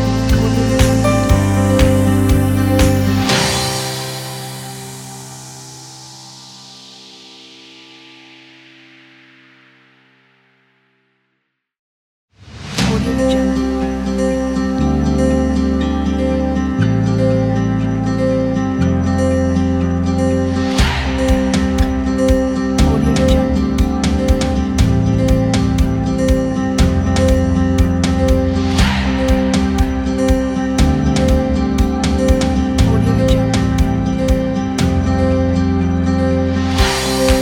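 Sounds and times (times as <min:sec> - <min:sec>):
upbeat acoustic indie music: 0:00.0 - 0:05.2, 0:12.8 - 0:37.3.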